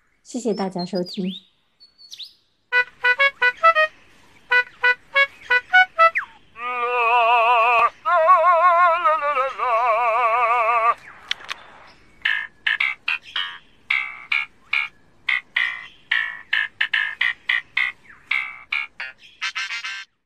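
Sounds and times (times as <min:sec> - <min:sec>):
lyrebird song: 0:00.0 - 0:20.2
speech: 0:00.3 - 0:01.5.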